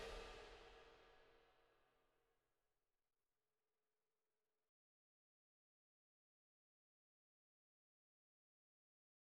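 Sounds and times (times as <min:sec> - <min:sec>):
cymbals: 0:00.0 - 0:00.5
music: 0:00.0 - 0:02.1.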